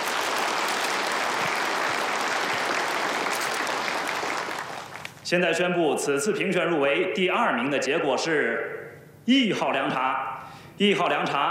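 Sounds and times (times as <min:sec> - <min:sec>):
audience applause: 0:00.0 - 0:05.2
speech: 0:05.3 - 0:11.4.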